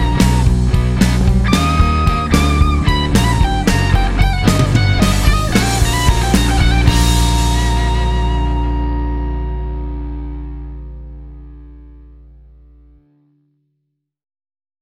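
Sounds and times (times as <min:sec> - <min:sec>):
music in augmented mode: 0:00.0 - 0:11.0.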